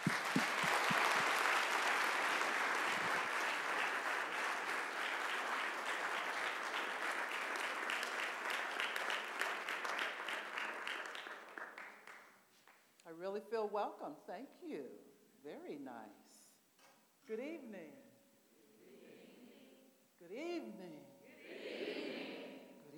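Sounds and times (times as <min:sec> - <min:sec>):
audience applause welcoming a speaker at Whitworth University in Spokane: 0:00.0 - 0:12.2
speech: 0:13.3 - 0:16.3, 0:17.3 - 0:18.0, 0:20.3 - 0:21.1.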